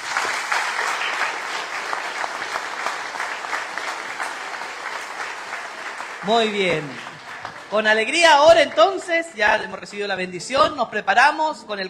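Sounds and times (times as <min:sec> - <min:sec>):
audience applause: 0:00.0 - 0:09.1
speech: 0:06.2 - 0:07.1, 0:07.7 - 0:11.8.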